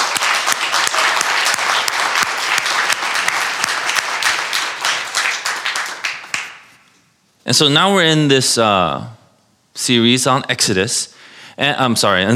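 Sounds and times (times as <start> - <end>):
audience applauding: 0.0 - 6.8
speech: 7.5 - 9.2, 9.8 - 12.3.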